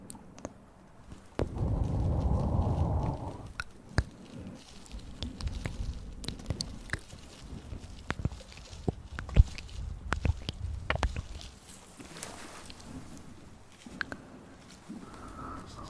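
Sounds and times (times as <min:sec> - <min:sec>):
mouth clicks, smacks and pops: 0:00.0 - 0:00.6, 0:01.4 - 0:04.3, 0:05.1 - 0:11.6, 0:13.8 - 0:14.3
heavy breathing: 0:01.4 - 0:07.6, 0:12.0 - 0:15.8.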